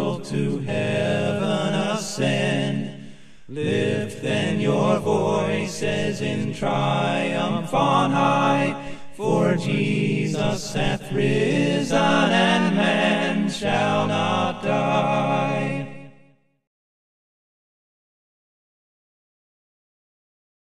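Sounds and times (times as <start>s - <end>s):
a cappella hymn: 0.0s - 16.4s.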